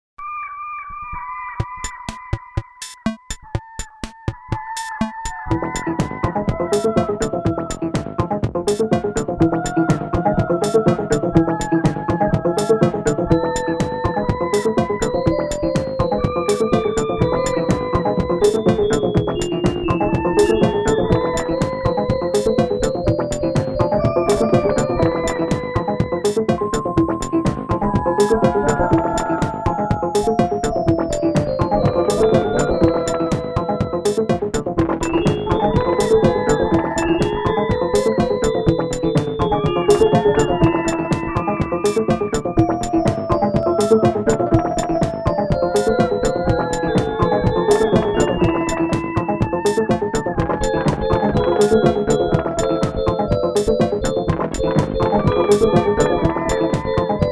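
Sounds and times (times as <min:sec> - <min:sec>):
trance music on Casio SK-1 keyboard: 0:01.6 - 0:57.2.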